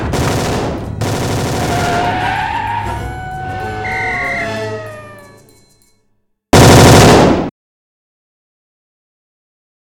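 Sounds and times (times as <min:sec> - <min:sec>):
Thompson 1921 submachine gun: 0:00.1 - 0:01.7, 0:06.5 - 0:07.5.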